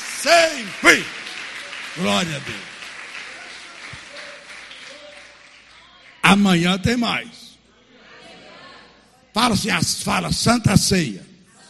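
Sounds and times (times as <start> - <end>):
crowd applauding: 0.0 - 6.4
speech: 0.2 - 1.2, 2.0 - 2.7, 6.3 - 7.4, 9.4 - 11.3.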